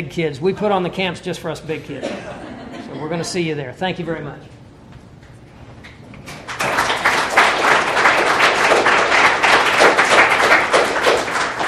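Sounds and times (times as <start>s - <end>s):
speech: 0.0s - 4.5s
audience applause: 6.3s - 11.6s.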